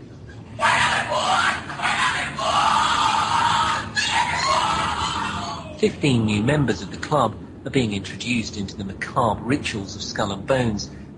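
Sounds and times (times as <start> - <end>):
screams during a Skull and Bones initiation ceremony: 0.6 - 5.8
speech: 5.8 - 11.0.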